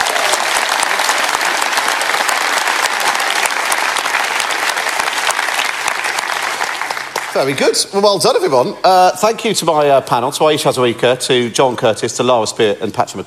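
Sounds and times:
audience applause: 0.0 - 7.8
speech: 7.4 - 13.2.

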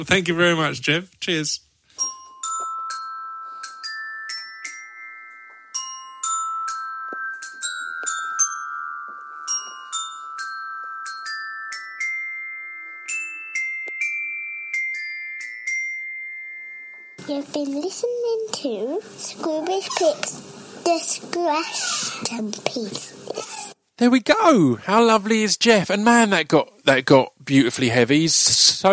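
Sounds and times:
speech: 0.0 - 2.1, 17.6 - 28.9
xylophone jingle: 2.0 - 17.4.

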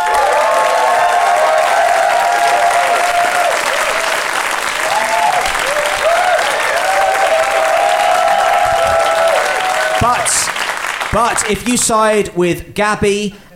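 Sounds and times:
cheers and whoops: 0.0 - 10.3
live audience applause: 0.0 - 12.0
speech: 11.1 - 13.5.

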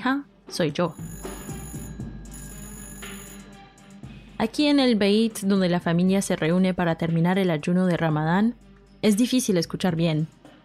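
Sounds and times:
speech: 0.0 - 1.2, 4.4 - 10.4
telephone ringing: 0.9 - 3.6.

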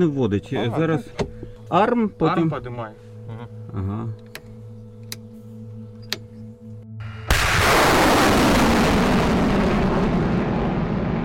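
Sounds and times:
speech: 0.0 - 4.3
sharp clicks: 4.2 - 5.3
HIMARS rocket launcher firing during Ukrainian army training: 7.0 - 11.2.

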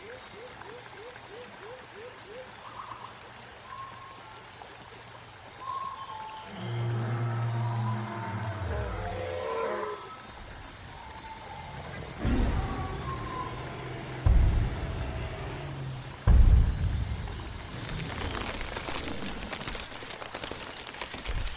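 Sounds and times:
dinosaur low rumbling roar: 6.5 - 10.1, 11.4 - 19.5
sharp thuds: 14.0 - 18.9.

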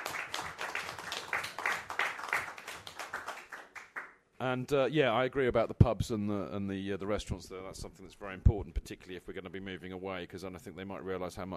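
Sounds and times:
audience applause: 0.0 - 4.1
speech: 4.4 - 11.5.

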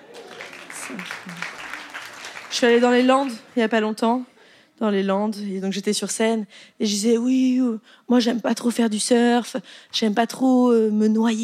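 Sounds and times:
audience clapping: 0.0 - 3.8
speech: 0.9 - 1.6, 2.5 - 11.4.

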